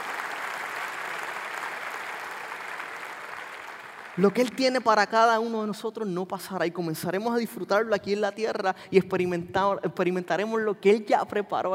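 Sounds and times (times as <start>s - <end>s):
audience applause: 0.0s - 4.2s
speech: 4.2s - 11.7s.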